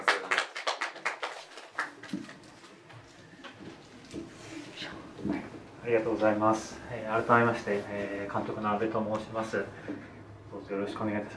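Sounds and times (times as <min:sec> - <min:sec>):
audience applause: 0:00.0 - 0:02.6
speech: 0:05.9 - 0:10.1, 0:10.7 - 0:11.3.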